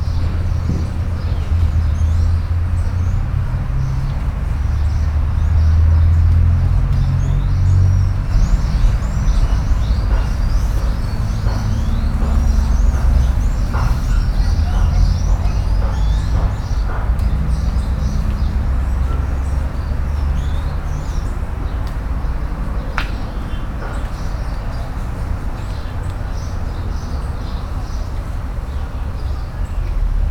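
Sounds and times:
garden ambience in Brazil: 0.0 - 30.2.

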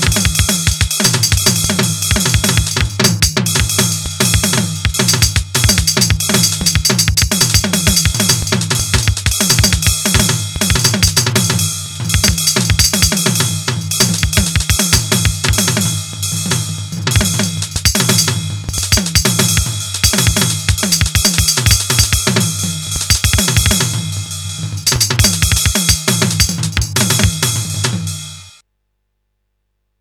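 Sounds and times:
noise beats: 0.0 - 28.4.

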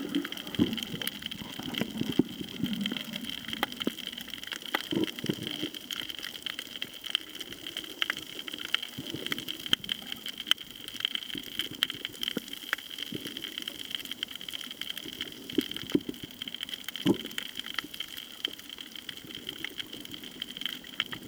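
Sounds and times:
beach at Koh Tao: 0.0 - 3.8
snorkeling at Koh Tao: 0.0 - 21.2.

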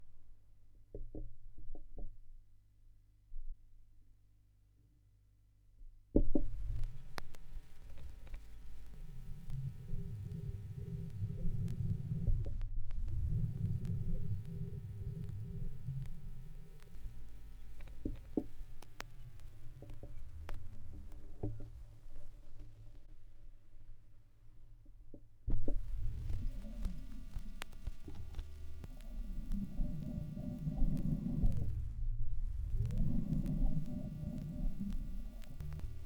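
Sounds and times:
vinyl record noise: 6.4 - 23.2, 25.5 - 36.0.

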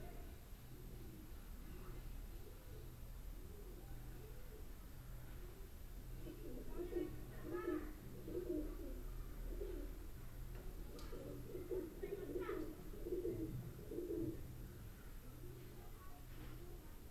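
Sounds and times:
pigeons in a wall in Boudha Kathmandu Nepal: 0.0 - 17.0.

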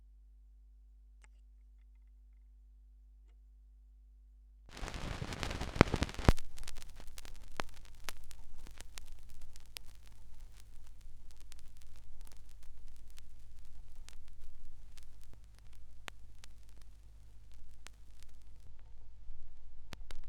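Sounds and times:
vinyl record noise: 4.7 - 20.2.

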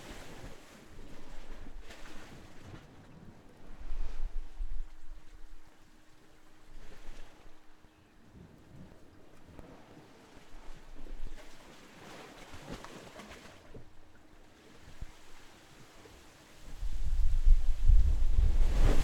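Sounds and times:
waves in Curacao: 0.0 - 19.0.

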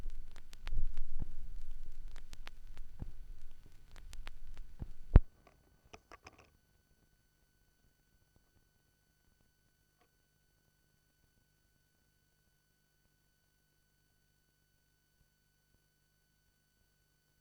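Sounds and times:
vinyl record noise: 0.0 - 5.3.

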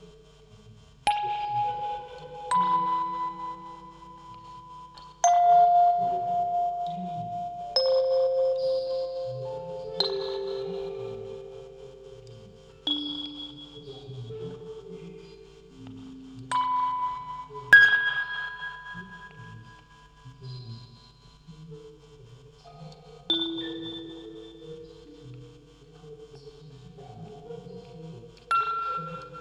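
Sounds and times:
field recording ambience: 0.0 - 29.3
vocoder voice: 0.0 - 29.3
music box quartet: 1.1 - 20.3, 23.3 - 25.4, 28.4 - 29.3.

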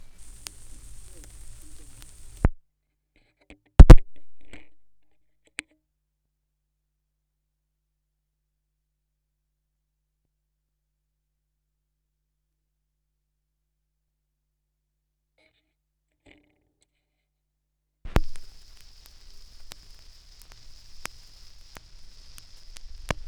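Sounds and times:
vinyl record noise: 0.0 - 2.6, 3.8 - 4.8, 18.1 - 23.2.

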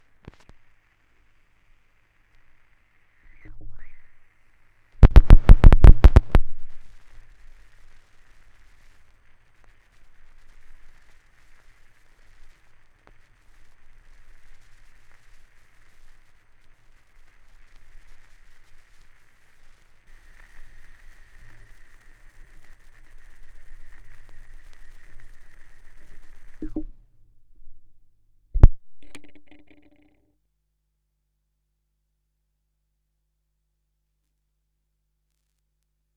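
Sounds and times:
vinyl record noise: 0.0 - 4.1, 5.0 - 27.0, 28.6 - 30.0.

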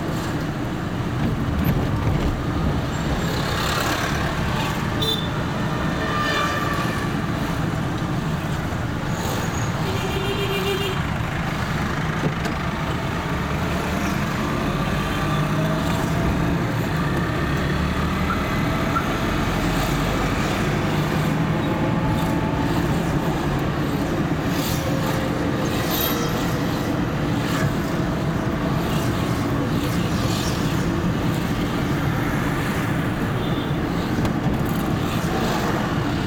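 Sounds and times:
vehicle ride in Boudha Kathmandu Nepal: 0.0 - 36.2.

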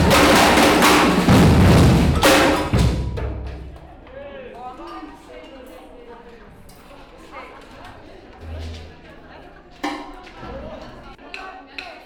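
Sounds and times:
batucada samba percussion rehearsal in Brazil: 0.0 - 4.2, 8.3 - 11.2.

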